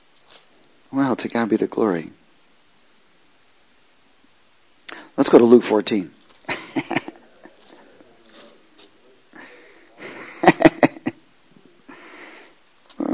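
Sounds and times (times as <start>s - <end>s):
speech: 0.9s - 2.2s, 5.3s - 6.2s
laughter: 6.5s - 11.2s
pages of books turning: 7.5s - 9.0s.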